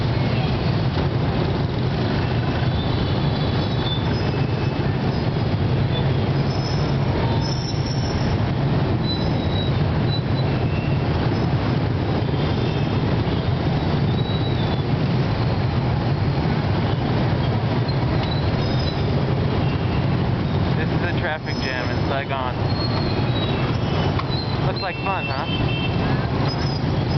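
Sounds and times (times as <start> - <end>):
engines rumbling in a Saigon traffic jam: 0.0 - 27.1
scattered voices: 20.8 - 22.6, 24.6 - 25.5.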